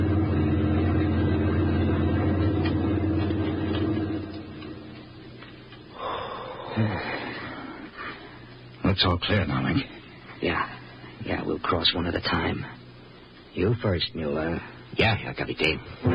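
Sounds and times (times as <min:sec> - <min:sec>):
German army lorry rumbling past: 0:00.0 - 0:05.3
speech: 0:09.0 - 0:12.8, 0:13.6 - 0:16.1.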